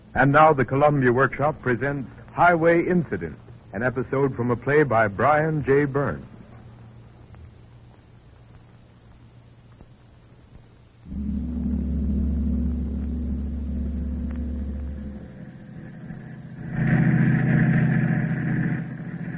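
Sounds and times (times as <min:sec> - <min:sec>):
speech: 0:00.2 - 0:06.3
car engine on a clear cool night highway drive: 0:11.1 - 0:19.3.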